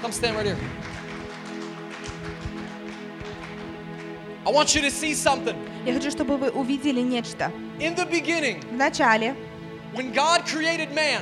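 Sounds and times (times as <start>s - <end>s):
speech: 0.0s - 1.0s, 4.4s - 11.2s
crowd applauding: 0.0s - 5.4s.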